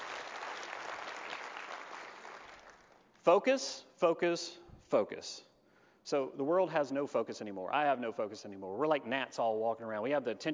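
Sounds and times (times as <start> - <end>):
audience applause: 0.0 - 3.0
speech: 3.2 - 10.5.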